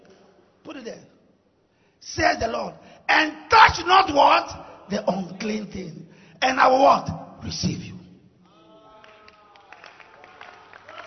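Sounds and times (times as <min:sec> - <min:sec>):
speech: 0:00.8 - 0:01.2, 0:02.0 - 0:08.0
audience clapping: 0:08.9 - 0:11.0.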